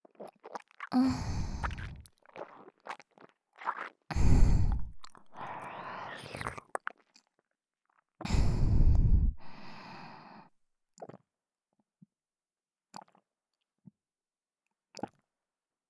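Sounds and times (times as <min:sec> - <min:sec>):
swallowing heard close to the ear: 0:00.0 - 0:09.7, 0:11.0 - 0:11.3, 0:12.9 - 0:13.2, 0:15.0 - 0:15.2.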